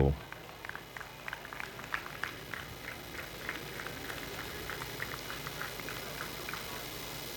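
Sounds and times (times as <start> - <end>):
audience applause: 0.0 - 7.2.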